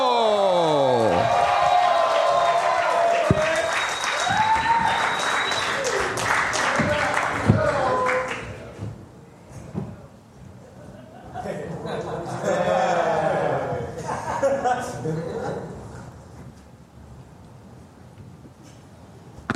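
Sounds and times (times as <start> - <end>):
audience applause: 0.0 - 8.6
laughter: 10.6 - 15.8.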